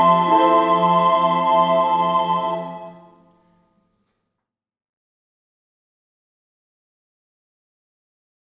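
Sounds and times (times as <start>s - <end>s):
baroque roll music: 0.0s - 3.2s.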